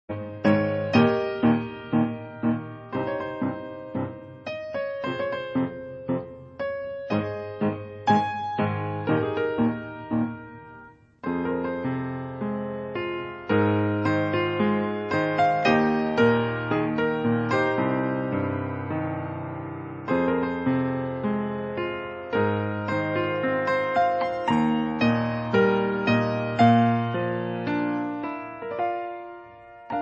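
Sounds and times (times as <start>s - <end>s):
piano suite: 0.0s - 29.9s.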